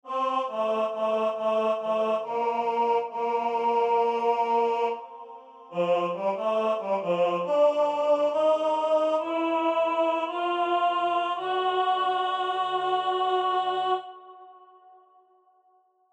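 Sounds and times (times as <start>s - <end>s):
tenor singing: 0.1s - 14.2s.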